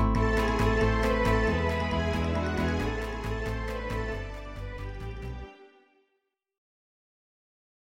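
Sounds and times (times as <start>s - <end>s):
flamenco music: 0.2s - 4.5s.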